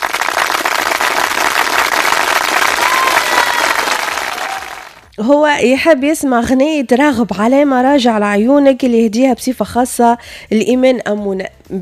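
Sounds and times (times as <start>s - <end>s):
applause sound effect on a youth radio show: 0.0s - 5.1s
speech: 5.2s - 11.8s.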